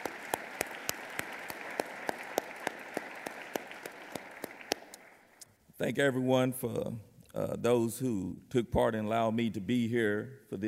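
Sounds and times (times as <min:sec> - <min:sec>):
audience applauding for the band: 0:00.0 - 0:05.4
speech: 0:05.8 - 0:10.6.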